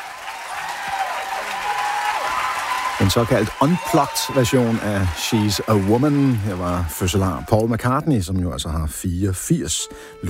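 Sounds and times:
audience applause: 0:00.0 - 0:07.8
speech: 0:03.1 - 0:10.2.

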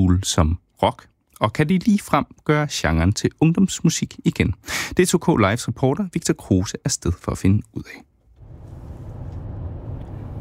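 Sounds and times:
speech: 0:00.0 - 0:08.1
car engine and road noise on the road from DR-Byen toward Kirke Hyllinge: 0:08.3 - 0:10.4.

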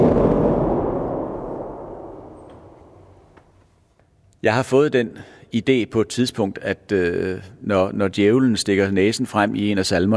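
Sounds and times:
organ thunder pedal: 0:00.0 - 0:03.4
speech: 0:04.4 - 0:10.1.

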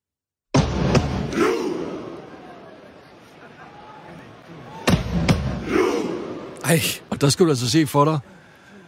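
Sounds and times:
fans chanting in unison during warm-up: 0:01.0 - 0:02.9, 0:03.6 - 0:06.7
speech: 0:06.7 - 0:08.4.

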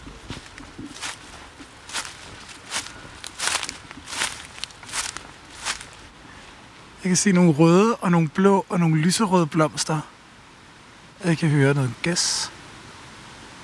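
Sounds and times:
footsteps pushing through dense brush of twigs and leaves: 0:00.0 - 0:06.3
speech: 0:07.0 - 0:10.1, 0:11.2 - 0:12.6.

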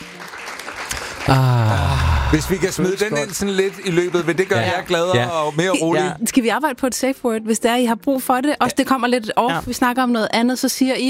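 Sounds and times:
canned applause sound effect played in a Danish radio studio: 0:00.0 - 0:05.7
speech: 0:01.3 - 0:11.0.

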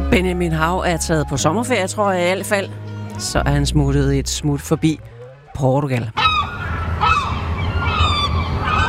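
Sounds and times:
speech: 0:00.1 - 0:06.2
seagulls screeching: 0:06.1 - 0:08.8.

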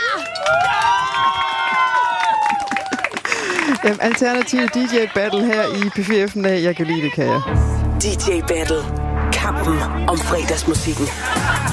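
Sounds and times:
audience clapping and cheering: 0:00.0 - 0:07.0
speech: 0:03.8 - 0:11.6
laughter: 0:10.2 - 0:11.7.

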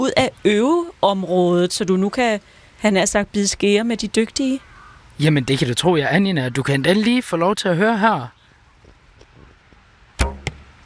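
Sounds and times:
speech: 0:00.0 - 0:08.4
arrow striking an archery target: 0:10.2 - 0:10.7.

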